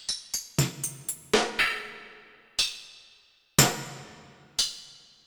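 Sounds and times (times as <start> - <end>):
stacked snare drum hits: 0.6 - 1.9, 3.6 - 4.5.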